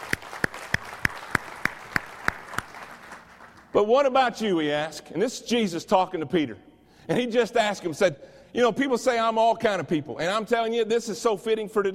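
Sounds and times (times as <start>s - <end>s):
audience applause: 0.0s - 3.7s
speech: 3.8s - 11.9s.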